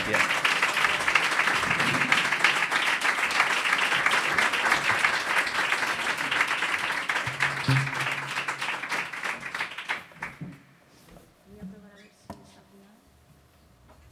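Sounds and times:
audience applause: 0.0 - 10.6.

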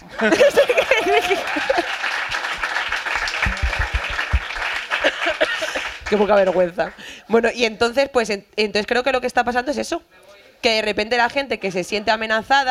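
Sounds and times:
audience applause: 0.0 - 7.1
laughter: 0.1 - 2.0, 4.9 - 6.0
speech: 0.2 - 1.6, 6.1 - 12.6.

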